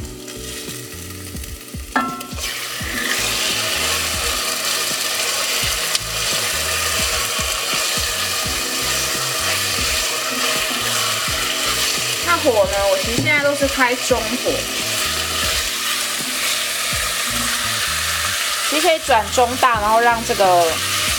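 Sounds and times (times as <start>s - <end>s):
chicken frying in a pan: 0.0s - 21.1s
speech: 12.4s - 14.9s, 18.8s - 20.9s.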